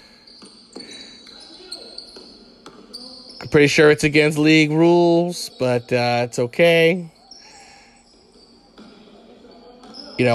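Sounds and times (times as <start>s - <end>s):
basketball dribbled up the court at a league championship game: 0.3s - 3.5s, 8.3s - 10.3s
speech: 3.4s - 7.2s, 10.2s - 10.3s.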